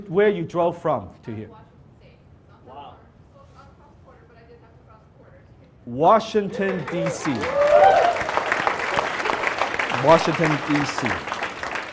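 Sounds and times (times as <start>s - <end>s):
speech: 0.1s - 1.6s, 5.8s - 8.0s, 10.0s - 11.4s
audience applause: 6.5s - 11.9s
high-pitched cheer: 7.0s - 9.5s.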